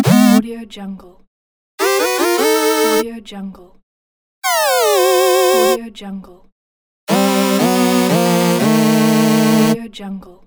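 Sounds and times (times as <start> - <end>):
8-bit game sounds: 0.0 - 0.4, 1.8 - 3.0, 4.4 - 5.8, 7.1 - 9.8.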